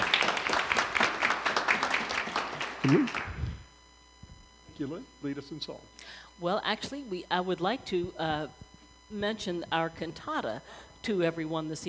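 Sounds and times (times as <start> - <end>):
audience applauding: 0.0 - 3.4
speech: 2.8 - 3.3, 4.8 - 11.8.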